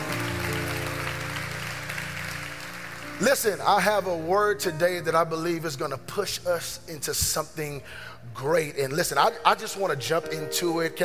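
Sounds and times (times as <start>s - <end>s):
audience clapping hands: 0.0s - 3.9s
speech: 3.2s - 11.0s.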